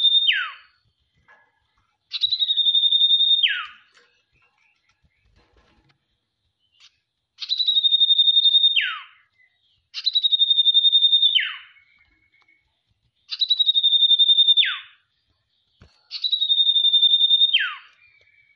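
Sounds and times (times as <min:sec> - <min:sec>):
Sirtu trilling: 0:02.1 - 0:04.0, 0:06.6 - 0:12.5, 0:13.3 - 0:15.1, 0:16.0 - 0:18.5.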